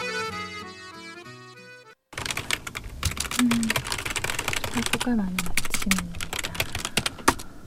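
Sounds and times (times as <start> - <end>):
typing on a keyboard: 2.1 - 7.5.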